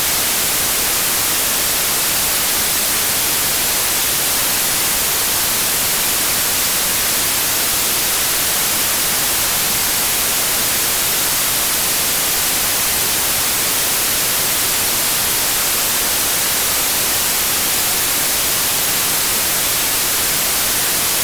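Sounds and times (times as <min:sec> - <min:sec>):
white noise: 0:00.0 - 0:21.2.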